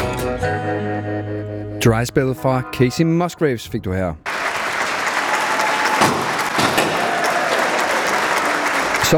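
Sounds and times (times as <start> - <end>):
speech: 0.4 - 4.3
loud applause: 4.3 - 9.1.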